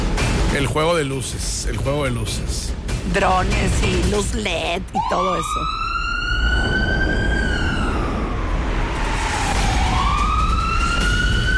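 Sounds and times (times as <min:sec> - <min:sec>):
speech: 0:00.6 - 0:05.8
ambulance siren sound effect: 0:05.0 - 0:11.5.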